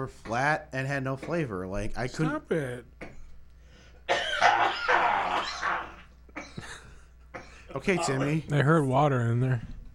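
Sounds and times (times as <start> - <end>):
speech: 0.0 - 3.0, 7.7 - 9.7
choking cough: 4.1 - 8.3.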